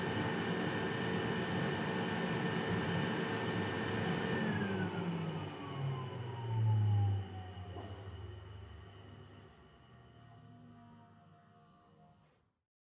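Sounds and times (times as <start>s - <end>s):
front load washing machine operating: 0.0s - 10.3s.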